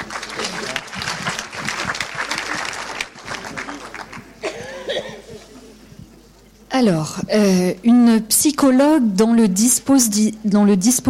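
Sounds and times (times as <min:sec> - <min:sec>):
audience applause: 0:00.0 - 0:04.7
speech: 0:06.8 - 0:11.0.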